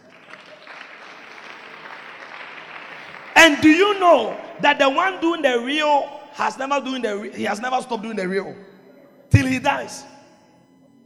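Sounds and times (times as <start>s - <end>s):
crowd applause: 0.0s - 4.0s
speech: 3.4s - 8.7s, 9.5s - 10.1s.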